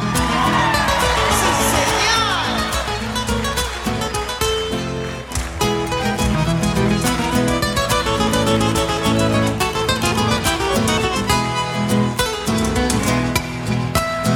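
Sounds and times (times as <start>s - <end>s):
crowd shouting and cheering: 0.0s - 14.2s.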